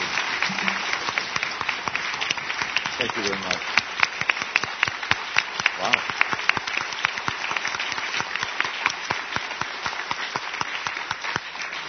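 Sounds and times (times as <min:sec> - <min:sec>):
audience round of applause: 0:00.0 - 0:11.8
speech: 0:03.0 - 0:03.8.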